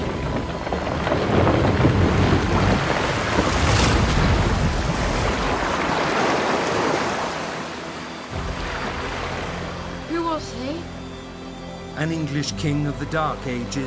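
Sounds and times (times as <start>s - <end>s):
longship creaking and rattling: 0.0s - 6.9s
rush of the swollen Thames: 0.0s - 12.0s
speech: 12.0s - 13.8s.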